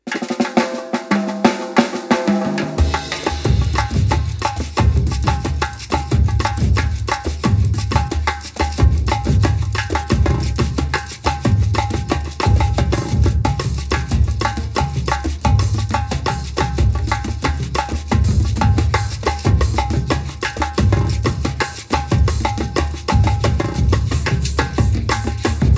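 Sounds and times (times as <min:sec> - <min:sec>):
repinique drum: 0:00.0 - 0:25.7.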